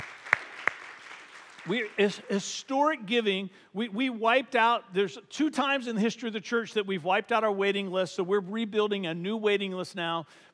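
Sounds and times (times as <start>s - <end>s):
sharp, louder individual claps: 0.0s - 1.7s
crowd clapping: 0.0s - 2.3s
speech: 1.6s - 10.5s.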